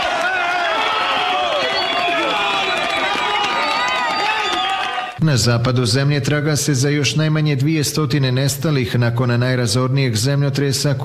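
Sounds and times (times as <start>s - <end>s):
bystanders cheering and clapping for rescuers after an earthquake in Pereira Colombia: 0.0s - 5.2s
speech: 5.2s - 11.0s.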